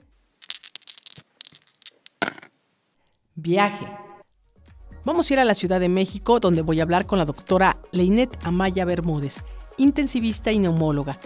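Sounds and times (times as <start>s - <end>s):
dice rolling: 0.4s - 2.6s
speech: 3.4s - 4.0s, 5.0s - 11.2s.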